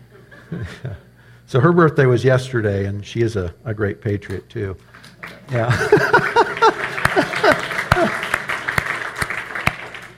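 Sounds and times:
laughter: 0:00.2 - 0:01.1, 0:05.5 - 0:10.0
speech: 0:00.5 - 0:07.7
audience applause: 0:05.0 - 0:10.1.

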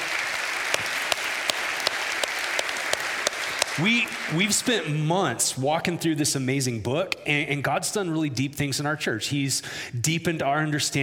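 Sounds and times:
audience clapping: 0:00.0 - 0:05.6
speech: 0:03.8 - 0:11.0.

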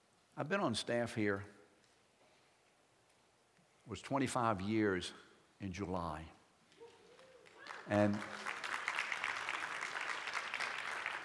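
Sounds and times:
speech: 0:00.4 - 0:01.6, 0:03.9 - 0:06.4, 0:07.9 - 0:08.5
crowd applauding: 0:06.9 - 0:11.2.

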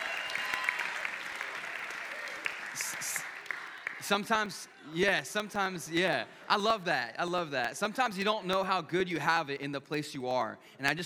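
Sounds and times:
audience applause and cheering for a youth pastor: 0:00.0 - 0:04.7
speech: 0:04.1 - 0:11.0.

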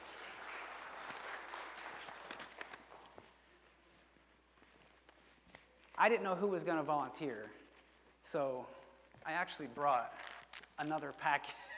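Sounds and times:
audience applause: 0:00.0 - 0:02.4
speech: 0:06.0 - 0:07.6, 0:08.3 - 0:11.6.

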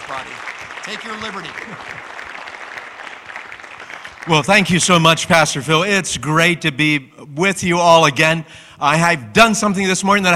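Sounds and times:
church congregation applause welcoming a guest speaker: 0:00.0 - 0:05.3
speech: 0:00.1 - 0:02.2, 0:04.2 - 0:10.3.

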